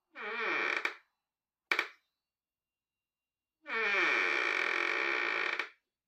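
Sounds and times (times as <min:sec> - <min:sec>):
door creaking: 0:00.1 - 0:01.0, 0:01.7 - 0:02.0, 0:03.7 - 0:05.8.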